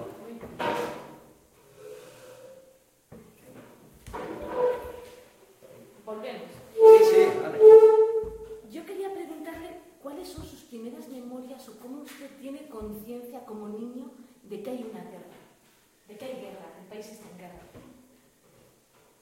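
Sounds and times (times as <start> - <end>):
chair being moved with scraping knocks: 0.0 - 6.0, 6.6 - 8.6
chair making a sustained tonal creak or squeak: 3.2 - 5.3, 6.8 - 8.6
speech: 12.2 - 15.4.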